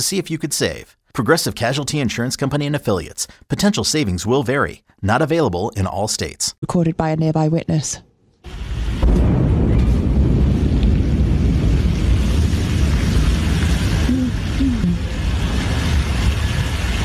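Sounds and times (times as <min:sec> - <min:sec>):
speech: 0:00.0 - 0:08.1
Blue Origin New Glenn rocket explosion during testing: 0:08.4 - 0:17.0.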